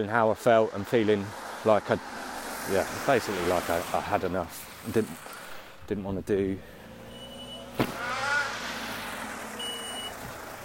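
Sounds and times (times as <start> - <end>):
speech: 0.0 - 5.3, 5.9 - 6.8
road traffic passing outside: 0.0 - 10.6.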